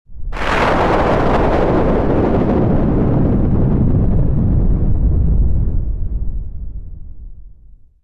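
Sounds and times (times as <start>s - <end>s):
thunder: 0.1s - 7.9s.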